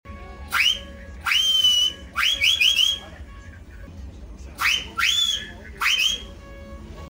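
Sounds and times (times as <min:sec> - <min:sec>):
whistle: 0:00.2 - 0:03.5, 0:04.6 - 0:06.8.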